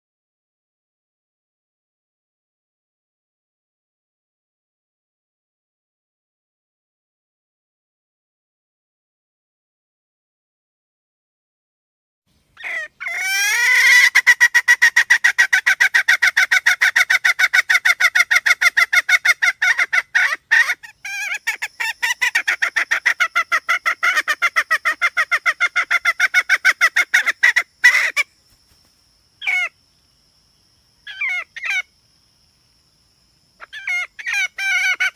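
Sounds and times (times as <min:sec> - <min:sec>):
red junglefowl hen cackling: 0:12.6 - 0:28.3, 0:29.4 - 0:29.7, 0:31.1 - 0:31.9, 0:33.6 - 0:35.1.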